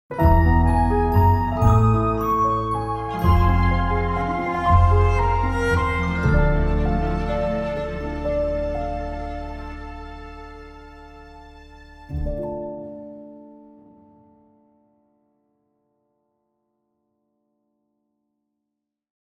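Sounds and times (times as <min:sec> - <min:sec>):
magical melodic logo jingle: 0:00.2 - 0:11.6.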